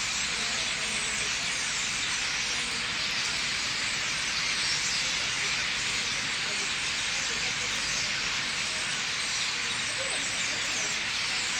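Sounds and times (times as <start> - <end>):
common starlings calling together in vast numbers in trees: 0.0 - 11.5.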